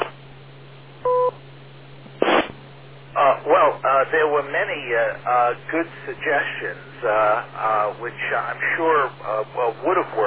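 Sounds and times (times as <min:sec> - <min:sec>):
crackling radio static: 0:00.0 - 0:00.2, 0:02.1 - 0:10.2
low constant hum: 0:00.0 - 0:10.2
two-tone radio beep: 0:01.0 - 0:01.4
speech: 0:04.0 - 0:10.2.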